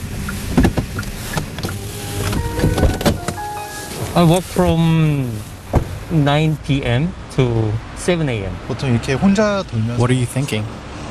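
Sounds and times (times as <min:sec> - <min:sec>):
delivery truck interior while driving: 0:00.0 - 0:07.6
speech: 0:04.2 - 0:05.5, 0:06.1 - 0:10.8.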